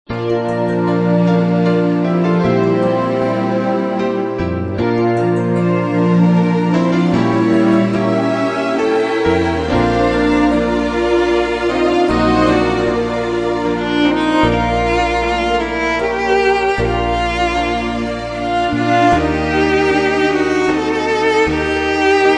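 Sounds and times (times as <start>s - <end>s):
instrumental hymns: 0.1s - 22.3s.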